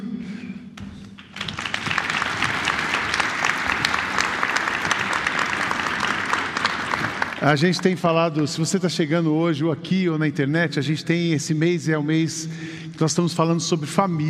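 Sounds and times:
audience applause: 1.2s - 8.1s
speech: 7.4s - 14.2s.

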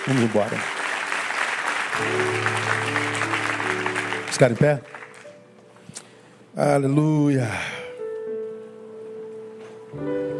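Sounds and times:
crowd applauding: 0.0s - 5.6s
speech: 0.1s - 0.8s, 2.0s - 3.0s, 4.3s - 5.0s, 6.6s - 7.7s.

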